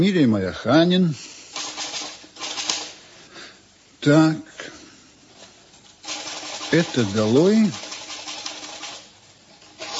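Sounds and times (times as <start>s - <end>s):
speech: 0.0s - 1.4s, 4.0s - 4.5s, 6.7s - 7.8s
typewriter keys clattering while typing a manuscript: 1.6s - 2.9s, 6.0s - 9.9s.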